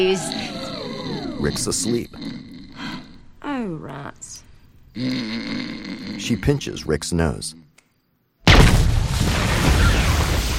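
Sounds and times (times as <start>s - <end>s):
speech: 0.0s - 0.4s, 1.1s - 2.5s, 5.0s - 7.6s
explosion at a dig site in China: 8.5s - 10.5s.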